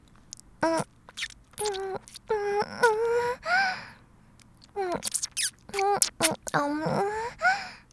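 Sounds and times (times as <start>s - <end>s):
kiss: 0.3s - 3.2s, 4.8s - 7.3s.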